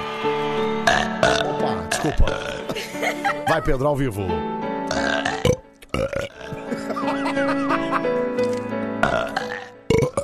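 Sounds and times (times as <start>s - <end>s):
long loud deliberate burp: 0.9s - 2.8s, 4.9s - 6.9s, 8.4s - 10.2s
people laughing: 2.0s - 4.0s, 6.4s - 8.3s
speech: 2.0s - 5.3s.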